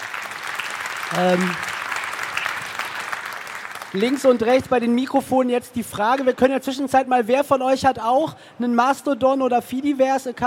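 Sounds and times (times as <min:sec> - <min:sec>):
audience applause: 0:00.0 - 0:04.9
speech: 0:01.1 - 0:01.7, 0:03.9 - 0:10.4.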